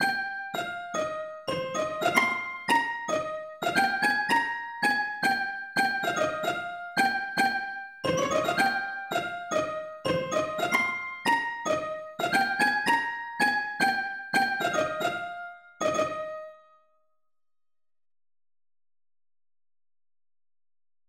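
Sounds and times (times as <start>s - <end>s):
lead melody: 0.0s - 16.6s.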